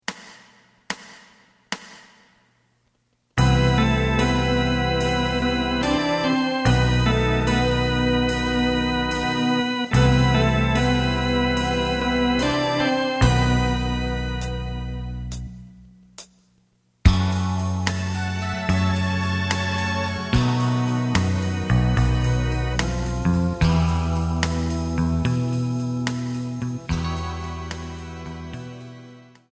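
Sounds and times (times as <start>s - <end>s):
lead melody: 3.4s - 15.9s, 17.1s - 29.5s.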